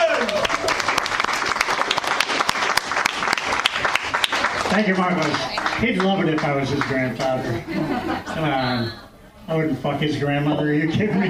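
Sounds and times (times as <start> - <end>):
Chicago comedy club audience applauding to welcome a comedian: 0.0 - 7.6
speech: 4.8 - 11.2
laughter: 6.8 - 9.1, 10.1 - 11.2.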